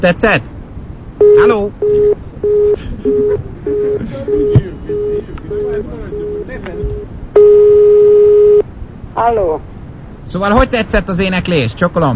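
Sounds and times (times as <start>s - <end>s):
speech: 0.0s - 0.6s, 1.3s - 8.0s, 9.2s - 9.7s, 10.3s - 12.1s
steady unbroken telephone tone: 1.2s - 8.6s
telephone busy tone beeps after the other side hung up: 1.2s - 8.6s.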